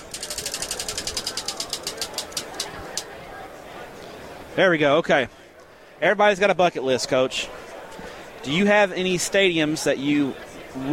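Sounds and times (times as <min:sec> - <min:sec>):
Dick's Sporting Goods prize wheel spinning and ticking: 0:00.0 - 0:03.0
speech: 0:04.6 - 0:05.4, 0:06.0 - 0:07.6, 0:08.4 - 0:10.9.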